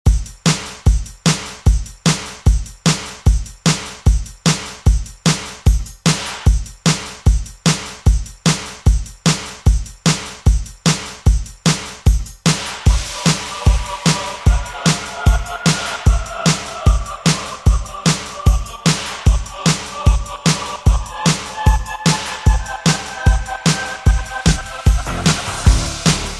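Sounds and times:
80s style music at 124 BPM: 0.1 - 26.3.

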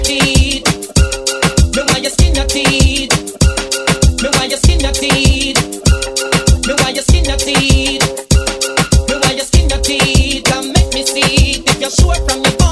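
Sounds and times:
dancehall music snippets: 0.0 - 12.6.

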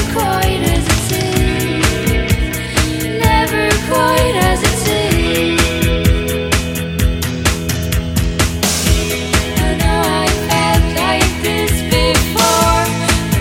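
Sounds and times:
1990s pop rock drum beat: 0.0 - 13.3.

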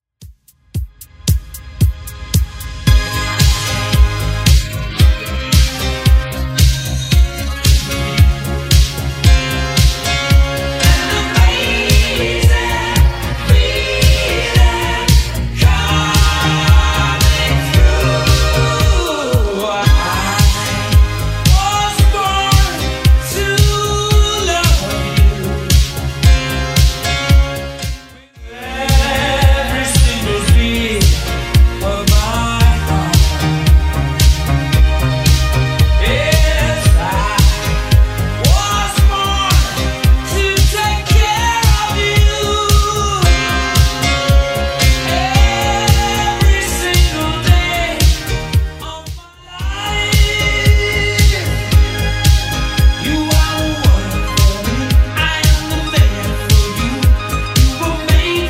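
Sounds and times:
80s style beat at 113 bpm: 0.1 - 58.4.

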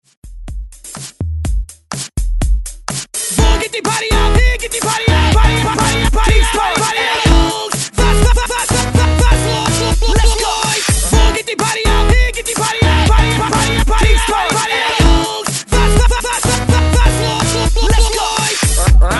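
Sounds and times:
hype intro music: 0.5 - 19.1.

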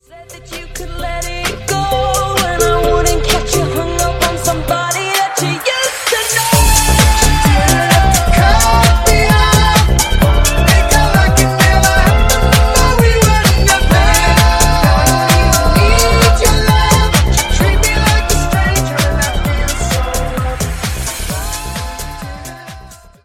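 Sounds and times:
130 bpm G minor tech house music: 0.0 - 23.2.

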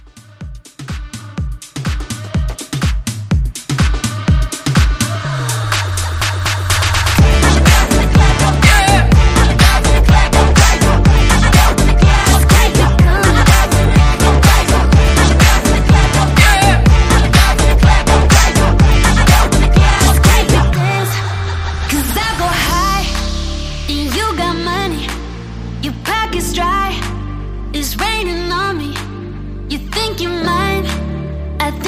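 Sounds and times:
club music: 0.0 - 31.8.

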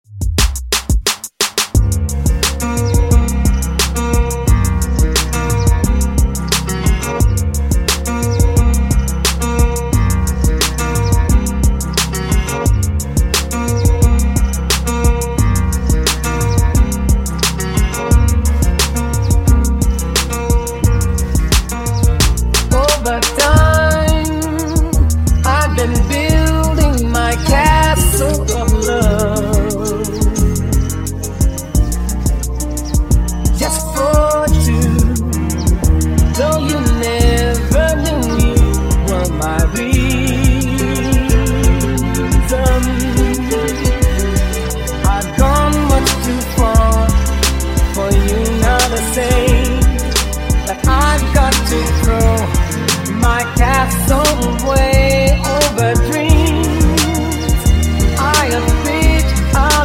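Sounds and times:
funk DJ intro outro: 0.0 - 59.8.

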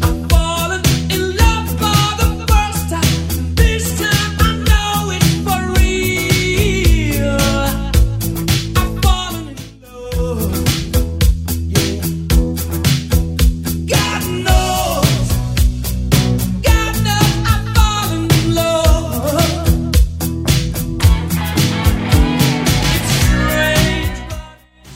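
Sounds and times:
1980s rock drum beat: 0.0 - 24.9.

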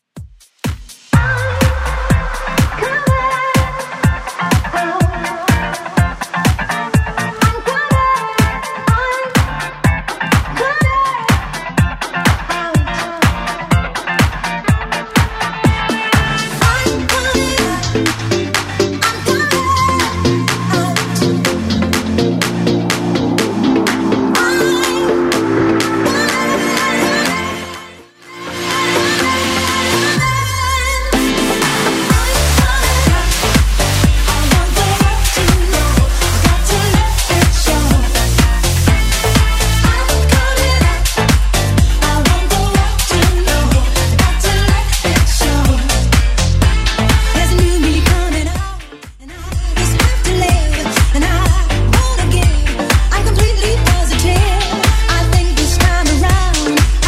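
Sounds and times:
1980s-style music at 124 BPM: 0.2 - 57.0.

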